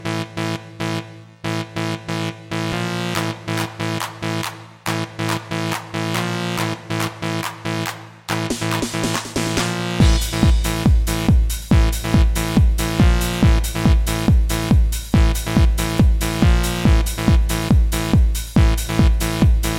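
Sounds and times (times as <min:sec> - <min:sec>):
RnB beats: 0:01.6 - 0:19.7.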